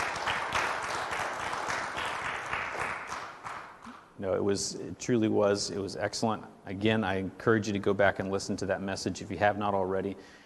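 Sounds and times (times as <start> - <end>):
audience applause: 0.0 - 3.8
speech: 4.2 - 10.4.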